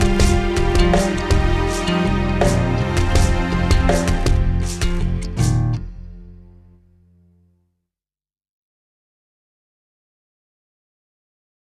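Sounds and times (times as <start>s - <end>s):
instrumental music: 0.0s - 7.6s.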